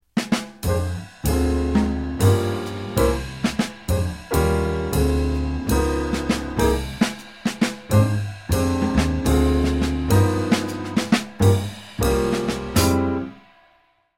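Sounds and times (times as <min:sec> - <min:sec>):
medium slow melody: 0:00.6 - 0:07.1, 0:07.9 - 0:13.4.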